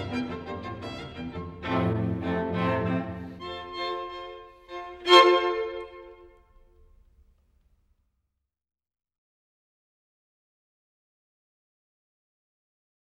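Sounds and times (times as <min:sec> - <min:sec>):
string quartet playing a lively movement in F major: 0:00.0 - 0:06.5.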